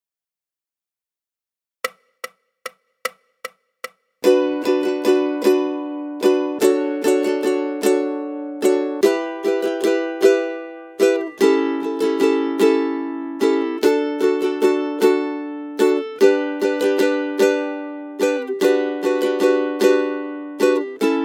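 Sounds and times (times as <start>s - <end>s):
ukulele rhythm study: 1.9s - 21.2s.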